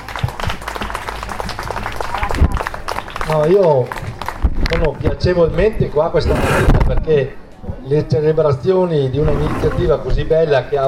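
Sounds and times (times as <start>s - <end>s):
audience applause at a morning public celebration greeting a land reclamation consortium president: 0.0s - 4.5s
speech: 3.3s - 10.8s.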